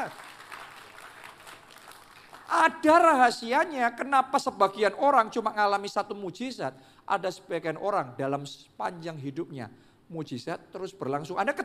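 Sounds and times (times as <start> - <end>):
audience applause: 0.0 - 2.5
speech: 2.5 - 11.6.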